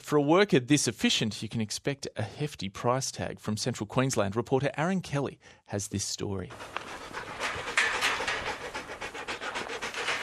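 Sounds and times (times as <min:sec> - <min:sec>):
speech: 0:00.1 - 0:07.3
border collie working dog panting: 0:06.5 - 0:10.2.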